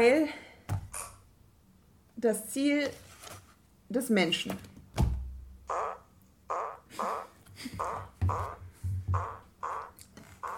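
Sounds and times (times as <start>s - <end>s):
speech: 2.2s - 3.1s, 3.9s - 4.7s
fart: 5.7s - 10.5s.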